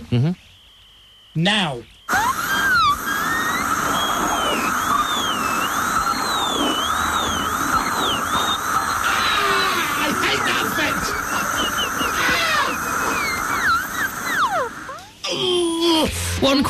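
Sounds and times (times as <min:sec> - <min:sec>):
speech: 0:00.1 - 0:00.5, 0:01.3 - 0:02.4, 0:16.0 - 0:16.6
dentist's drill: 0:02.1 - 0:15.2.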